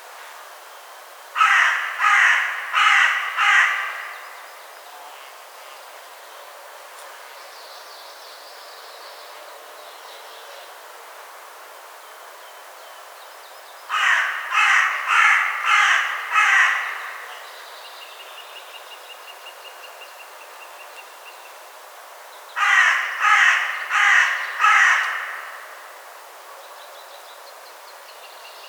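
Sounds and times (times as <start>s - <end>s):
Carrion crow Corvus corone cawing: 1.4s - 4.4s, 13.9s - 17.4s, 22.6s - 26.0s.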